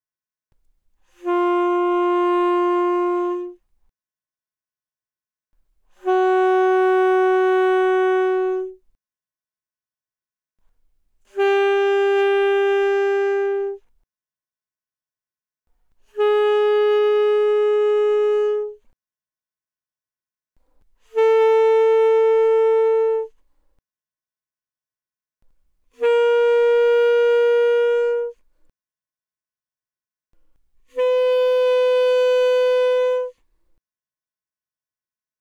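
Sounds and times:
alto saxophone notes without vibrato from C4 to B4: 1.0 - 3.6, 5.9 - 8.8, 11.3 - 13.9, 16.0 - 18.9, 21.0 - 23.4, 25.9 - 28.4, 30.8 - 33.4.

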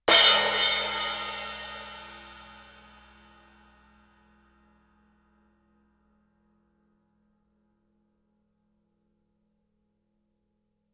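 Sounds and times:
suspended cymbal crash with stick shoulder fortissimo: 0.1 - 3.2.

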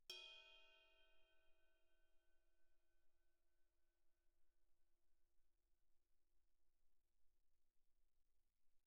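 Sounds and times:
soft stick hits on suspended ride cymbal bell: 0.1 - 1.3.

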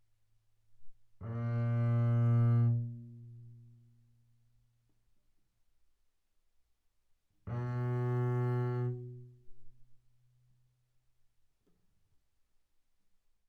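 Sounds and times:
double bass bowed fortissimo on the D string: 1.2 - 3.4, 7.5 - 9.2.

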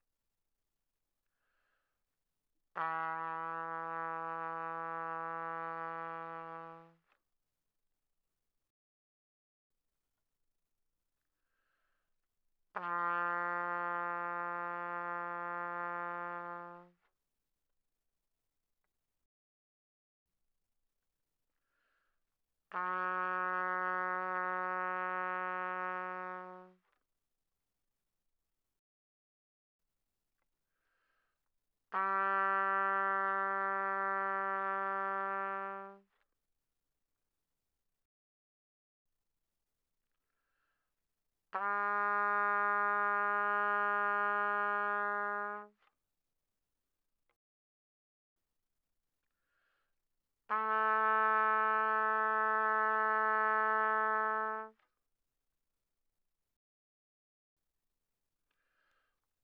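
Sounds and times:
trumpet notes without vibrato, pianissimo: 2.8 - 7.1, 12.7 - 17.0, 22.7 - 26.8, 31.9 - 36.1, 41.5 - 45.8, 50.5 - 54.8.

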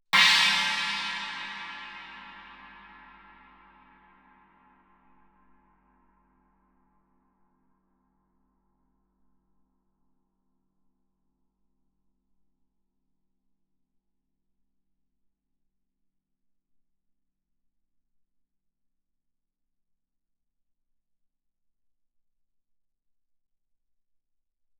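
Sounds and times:
Chinese stick on suspended cymbals played fortissimo: 0.2 - 3.7.

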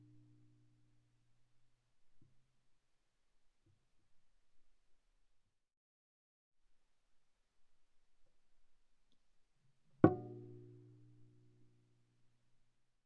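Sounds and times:
viola pizzicato on the G string fortissimo: 10.1 - 10.9.

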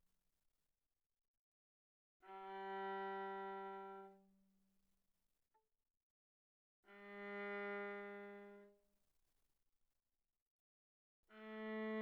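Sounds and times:
viola bowed arco sul C pianissimo: 2.2 - 4.4, 6.9 - 8.8, 11.3 - 11.9.

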